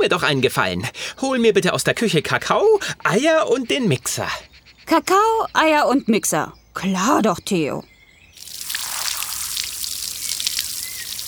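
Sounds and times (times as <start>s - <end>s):
speech: 0.0s - 7.9s
garden hose spraying water on bones: 8.4s - 11.2s.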